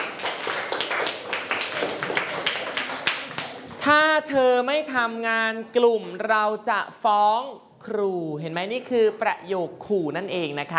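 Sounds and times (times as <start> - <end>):
children clapping: 0.0 - 3.8
speech: 3.8 - 10.7.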